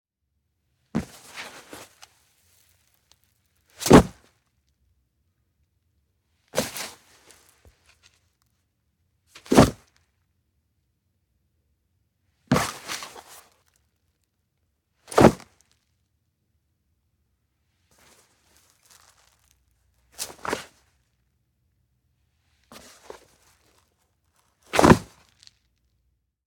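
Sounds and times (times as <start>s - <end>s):
wet neoprene wetsuit: 1.0s - 3.1s, 3.7s - 4.3s, 6.6s - 7.7s, 9.4s - 9.9s, 12.5s - 13.6s, 15.1s - 15.5s, 20.1s - 20.9s, 22.7s - 23.9s, 24.6s - 25.5s.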